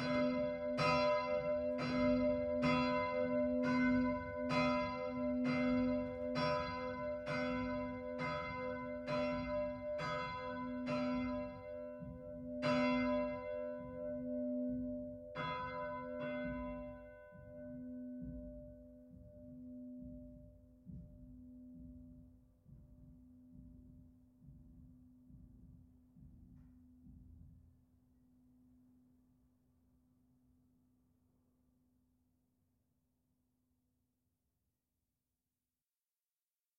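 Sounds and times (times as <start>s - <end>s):
bells ringing indoors: 0.0s - 20.7s.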